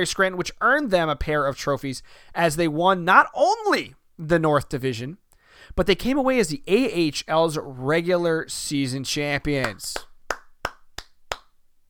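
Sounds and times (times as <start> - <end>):
speech: 0.0 - 10.1
single hand clap: 9.6 - 11.6.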